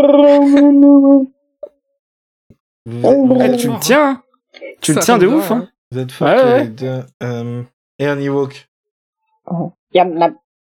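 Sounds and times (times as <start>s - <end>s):
speech: 0.0s - 1.4s, 2.8s - 8.7s, 9.5s - 10.4s
voice imitating a Wookiee growl: 2.9s - 3.9s.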